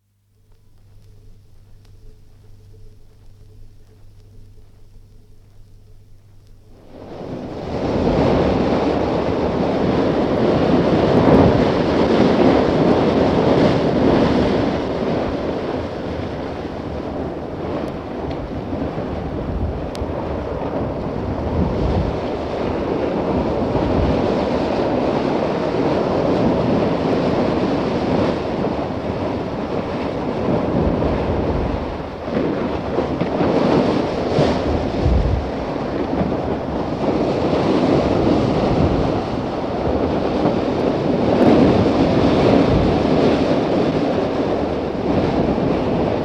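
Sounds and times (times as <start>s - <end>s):
rough winds on shore: 0.0s - 46.2s.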